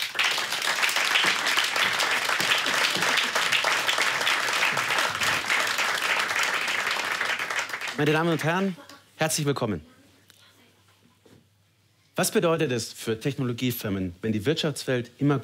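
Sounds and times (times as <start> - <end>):
audience applause: 0.0 - 8.7
speech: 8.0 - 9.9, 12.2 - 15.4.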